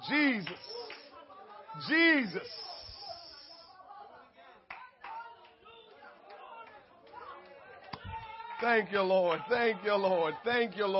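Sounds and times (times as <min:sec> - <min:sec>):
speech: 0:00.0 - 0:00.8, 0:01.8 - 0:02.7, 0:08.6 - 0:10.9
audience clapping hands: 0:00.2 - 0:01.2, 0:04.7 - 0:09.4.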